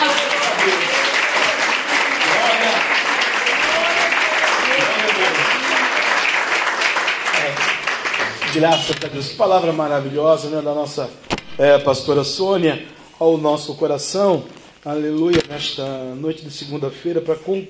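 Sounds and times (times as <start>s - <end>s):
audience applauding: 0.0s - 9.3s
speech: 8.6s - 17.6s.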